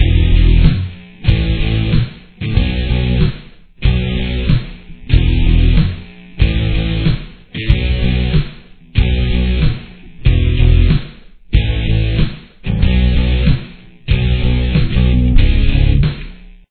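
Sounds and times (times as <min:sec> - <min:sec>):
guitar with chorus effect: 0:00.0 - 0:16.6.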